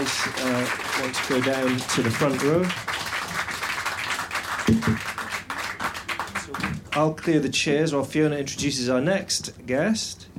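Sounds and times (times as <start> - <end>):
audience applause: 0.0 - 7.2
speech: 0.1 - 3.0, 7.0 - 10.3.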